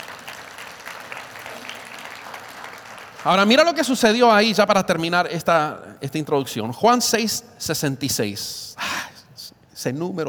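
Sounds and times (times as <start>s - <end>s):
audience applause: 0.0s - 3.8s
speech: 3.2s - 8.8s, 9.8s - 10.2s.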